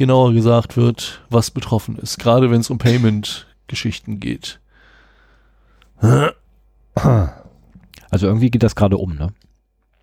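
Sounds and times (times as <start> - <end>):
speech: 0.0 - 4.6, 6.0 - 6.4, 7.0 - 7.4, 8.1 - 9.4
throat clearing: 6.0 - 7.9.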